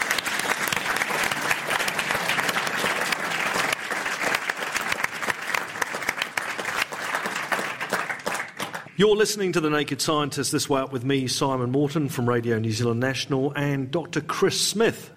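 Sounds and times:
audience applause: 0:00.0 - 0:09.0
speech: 0:09.0 - 0:15.1.

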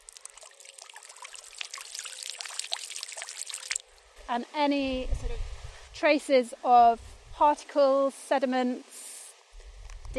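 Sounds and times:
water pushed through a filter housing: 0:00.0 - 0:04.2
speech: 0:04.3 - 0:08.9.

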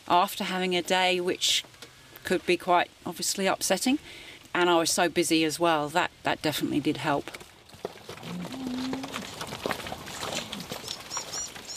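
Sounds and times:
speech: 0:00.1 - 0:07.4
herd of Red Devon beef cattle shuffling on a muddy track: 0:00.1 - 0:11.7
Red Devon beef cattle mooing: 0:08.2 - 0:09.5
faint bird chirps: 0:10.8 - 0:11.7.

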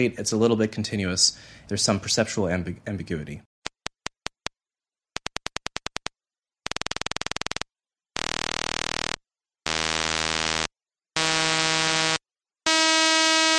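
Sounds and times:
speech: 0:00.0 - 0:03.5
rapid repeated taps merging into a high-pitched buzz: 0:05.2 - 0:13.5.

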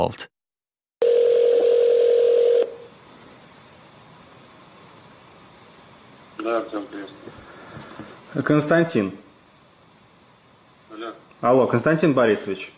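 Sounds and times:
speech: 0:00.0 - 0:00.3, 0:08.4 - 0:09.2, 0:11.0 - 0:12.7
telephone ringing tone: 0:01.0 - 0:02.9.

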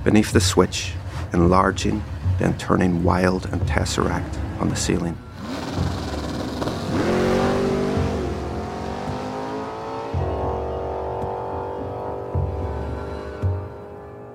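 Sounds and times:
speech: 0:00.1 - 0:05.3
speeding car engine revving through gear changes: 0:05.2 - 0:14.3.

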